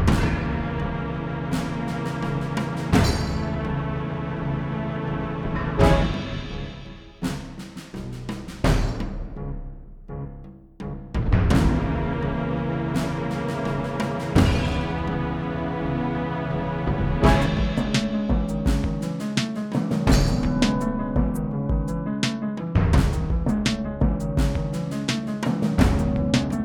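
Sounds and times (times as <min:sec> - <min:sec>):
town music loop: 0:00.1 - 0:09.1, 0:11.3 - 0:26.6.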